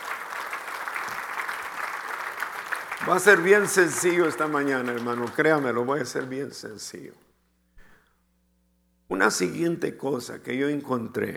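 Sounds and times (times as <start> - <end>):
church congregation applauding: 0.0 - 7.1
speech: 3.0 - 7.2, 9.1 - 11.3.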